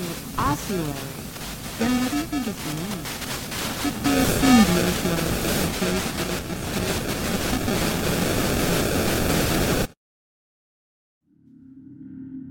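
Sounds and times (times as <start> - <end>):
loud harsh hissing static from a camera recording: 0.0 - 10.0
speech: 0.5 - 7.1, 7.7 - 8.2.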